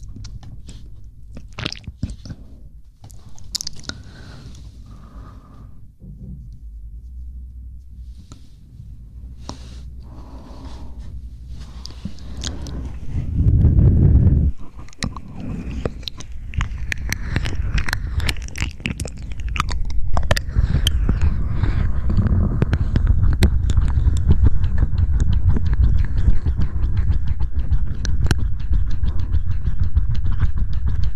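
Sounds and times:
close wet mouth clicks and smacks: 0:01.3 - 0:02.4, 0:03.1 - 0:04.0, 0:14.6 - 0:21.3, 0:22.2 - 0:31.1
low thump and rumble: 0:05.9 - 0:07.8, 0:11.0 - 0:31.1.

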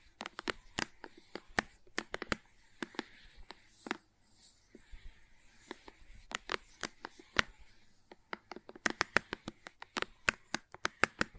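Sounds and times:
crayons tapping and clicking: 0:00.0 - 0:11.3
faint scratchy drawing and scraping: 0:00.0 - 0:11.3.

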